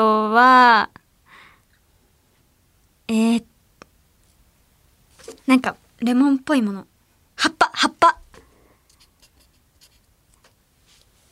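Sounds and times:
speech: 0.0s - 1.0s, 3.1s - 3.5s, 5.5s - 8.2s
low steady hiss: 0.0s - 11.2s
pen scratching across paper writing Japanese characters: 9.0s - 10.1s.

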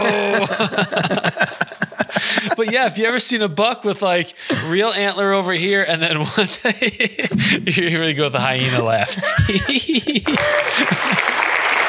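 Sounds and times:
audience clapping: 0.0s - 2.5s, 9.1s - 11.8s
laughter: 0.0s - 3.4s, 6.0s - 11.8s
speech: 0.6s - 1.2s, 2.6s - 11.4s.

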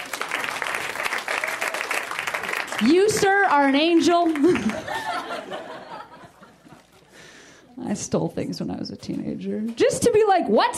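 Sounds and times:
crowd applauding: 0.0s - 6.1s
speech: 2.8s - 5.8s, 7.8s - 10.7s
laughter: 4.4s - 7.1s.

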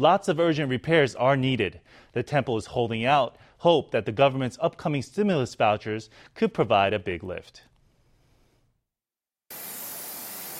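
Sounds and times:
speech: 0.0s - 7.7s
worker spraying alcohol disinfectant over a temple altar: 9.5s - 10.5s.

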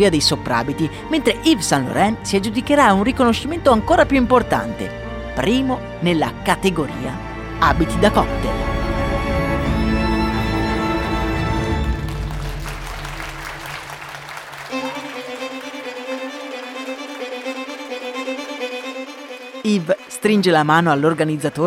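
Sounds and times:
speech: 0.0s - 8.7s, 19.6s - 21.6s
orchestral music: 0.0s - 21.6s
crowd clapping at an awards ceremony: 11.0s - 21.6s.

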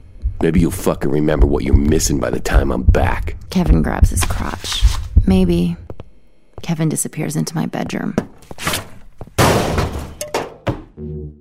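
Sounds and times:
speech: 0.4s - 5.8s, 6.6s - 8.8s
man slipping and hitting head on cabinet: 9.4s - 10.9s.

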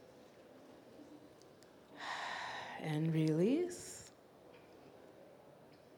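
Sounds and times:
person taking a deep breath in during a guided automatic-writing exercise: 2.0s - 2.8s
speech: 2.8s - 3.9s.

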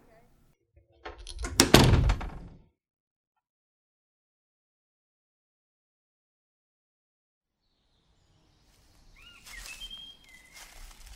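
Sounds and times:
door being closed: 0.9s - 2.6s.

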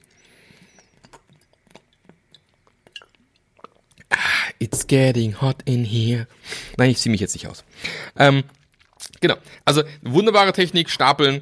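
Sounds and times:
sipping and swallowing water: 0.0s - 4.6s, 7.7s - 9.6s
speech: 4.6s - 8.6s, 9.2s - 11.4s.

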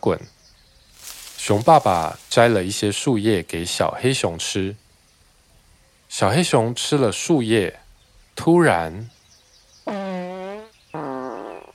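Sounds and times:
speech: 0.0s - 0.4s, 1.5s - 4.8s, 6.1s - 7.8s, 8.4s - 9.2s
farting: 9.9s - 11.7s.

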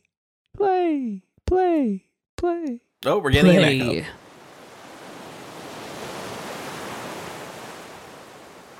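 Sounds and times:
speech: 0.6s - 4.2s
waves crashing on a beach: 4.2s - 8.7s.

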